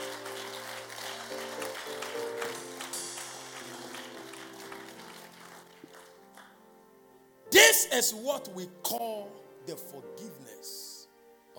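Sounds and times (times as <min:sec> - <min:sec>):
audience clapping: 0:00.0 - 0:06.7
speech: 0:07.5 - 0:10.8.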